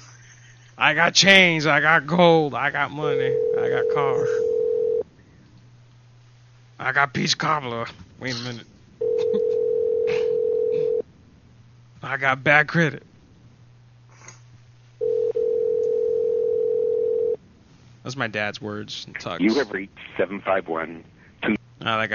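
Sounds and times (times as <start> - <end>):
low constant hum: 0.0 - 22.1
speech: 0.8 - 4.5, 6.8 - 8.7, 12.0 - 13.1, 18.0 - 22.1
telephone ringback tones on a call line: 3.1 - 5.0, 9.0 - 11.0, 15.0 - 17.4.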